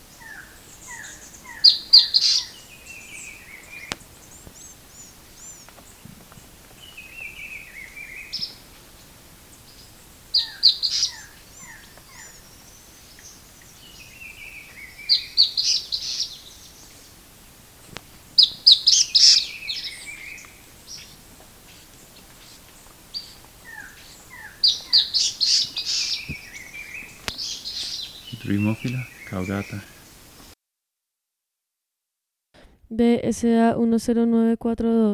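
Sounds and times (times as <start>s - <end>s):
bird chirping and whistling: 0.2s - 3.9s, 9.7s - 17.1s, 18.4s - 21.1s, 23.1s - 29.9s
speech: 28.5s - 29.9s, 33.0s - 35.1s.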